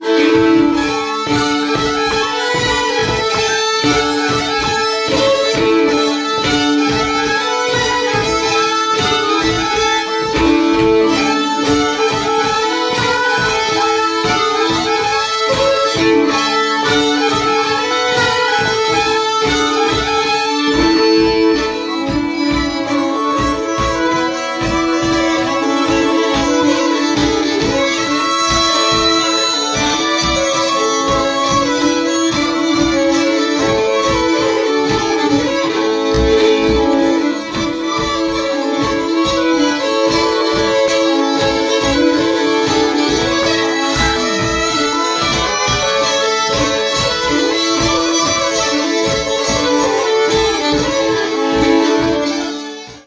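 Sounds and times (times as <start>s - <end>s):
polska dance tune: 0.0s - 53.0s.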